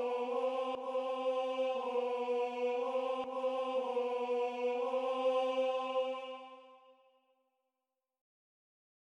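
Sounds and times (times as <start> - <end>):
tenor singing: 0.0 - 6.9.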